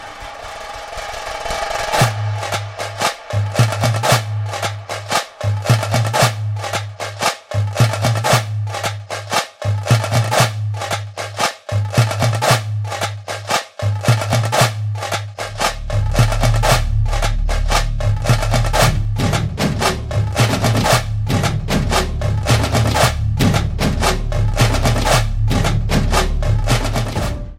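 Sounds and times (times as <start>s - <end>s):
drum beat background music ringtone: 0.2s - 27.5s.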